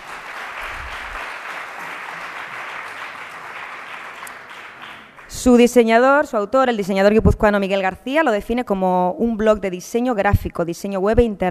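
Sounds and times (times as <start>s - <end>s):
audience applause: 0.0s - 5.3s
speech: 5.4s - 11.4s.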